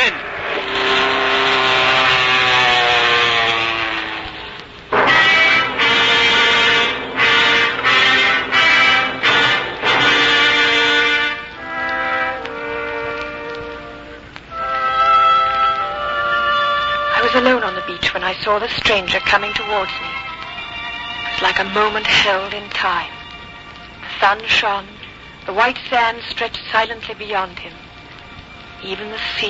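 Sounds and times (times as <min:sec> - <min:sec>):
airplane engine in trouble sputtering: 0:00.0 - 0:20.6
speech: 0:18.5 - 0:20.2, 0:21.4 - 0:23.2, 0:24.2 - 0:27.8, 0:28.8 - 0:29.4.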